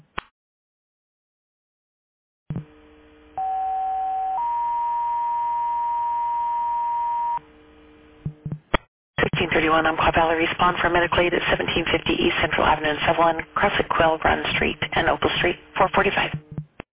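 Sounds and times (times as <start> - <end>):
dispatch pre-alert tone for medical call: 3.4 - 7.4
speech: 9.5 - 16.5.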